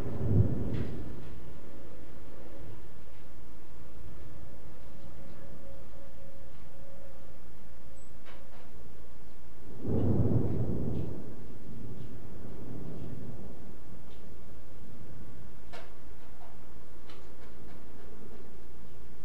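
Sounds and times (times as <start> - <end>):
thunder: 0.0 - 1.6, 9.7 - 15.9.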